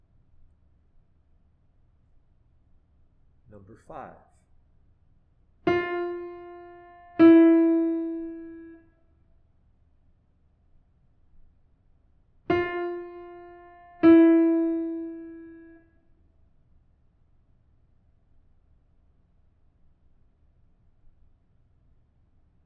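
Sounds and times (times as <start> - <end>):
musical intervals: 5.7 - 8.8, 12.5 - 15.7.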